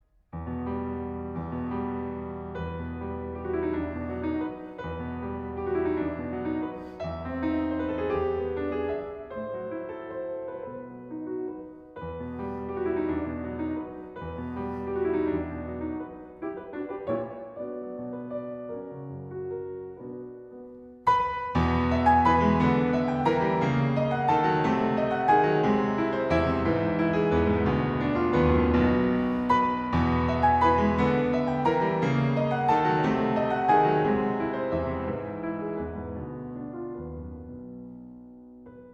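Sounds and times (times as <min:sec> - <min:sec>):
piano arrangement: 0:00.0 - 0:38.9.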